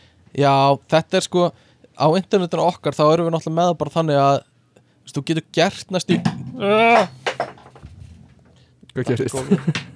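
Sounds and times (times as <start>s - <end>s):
speech: 0.4s - 4.5s, 5.1s - 7.5s, 9.0s - 9.9s
person exclaiming: 6.6s - 7.2s.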